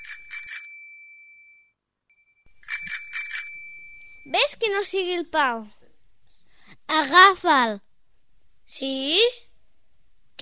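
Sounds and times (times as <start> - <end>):
mobile phone ringing: 0.0 - 4.3
speech: 4.3 - 5.8, 6.9 - 7.8, 8.7 - 9.4.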